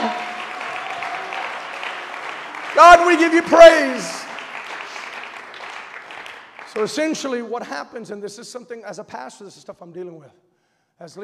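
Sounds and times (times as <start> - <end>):
audience clapping hands: 0.0 - 7.4
speech: 2.8 - 4.2, 6.8 - 11.2.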